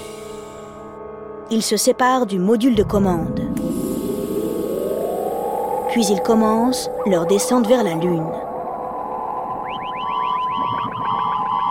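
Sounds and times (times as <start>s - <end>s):
speech: 1.5s - 3.7s, 6.0s - 8.4s
steady droning tone: 2.7s - 11.6s
onboard electronic alarm sounding short rising chirps: 3.4s - 11.6s.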